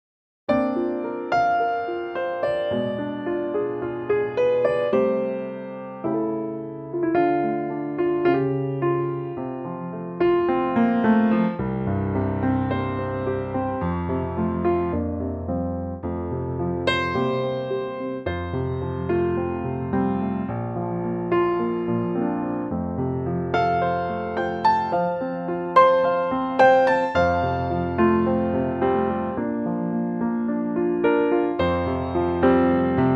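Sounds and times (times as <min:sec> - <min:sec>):
piano note F: 0:00.5 - 0:33.1.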